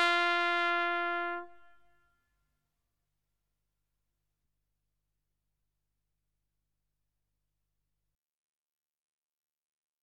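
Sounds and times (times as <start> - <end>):
military trumpet call: 0.0 - 1.9.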